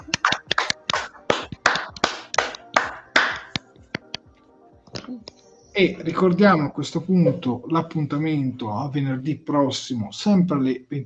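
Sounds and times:
applause: 0:00.2 - 0:03.5
speech: 0:05.1 - 0:11.0.

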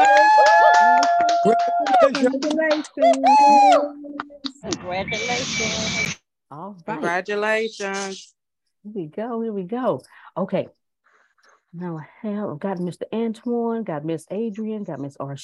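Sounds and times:
burst of applause: 0:00.0 - 0:03.9
high sing-song voices: 0:00.9 - 0:06.0
speech: 0:01.4 - 0:10.8, 0:11.7 - 0:15.4.

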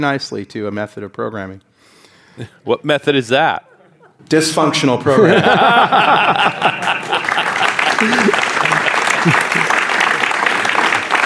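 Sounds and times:
speech: 0:00.0 - 0:07.0, 0:08.0 - 0:08.5, 0:09.2 - 0:09.7
laughter: 0:03.6 - 0:04.3, 0:05.0 - 0:10.0
audience round of applause: 0:05.7 - 0:11.2.

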